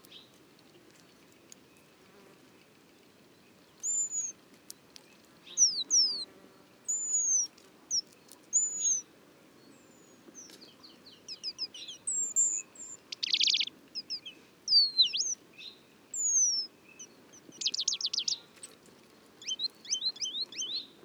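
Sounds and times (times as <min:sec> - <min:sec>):
White-crowned Peduline Tit Remiz coronatus singing in Aqoel Kazakhstan: 0:03.8 - 0:04.3, 0:05.5 - 0:06.3, 0:06.9 - 0:09.0, 0:09.7 - 0:18.8, 0:19.4 - 0:21.0.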